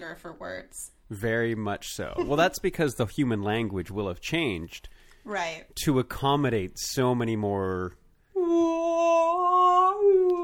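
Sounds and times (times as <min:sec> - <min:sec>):
speech: 0:00.1 - 0:09.5
human voice imitating whale song: 0:08.4 - 0:10.4.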